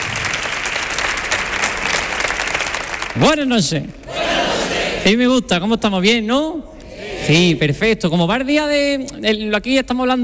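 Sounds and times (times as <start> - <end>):
audience clapping: 0.0 - 3.5
speech: 3.2 - 4.1, 5.0 - 10.2.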